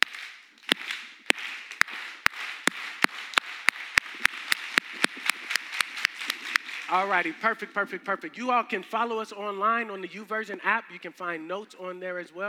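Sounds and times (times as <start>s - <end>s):
crowd clapping in rhythm: 0.0s - 8.4s
speech: 6.9s - 12.4s.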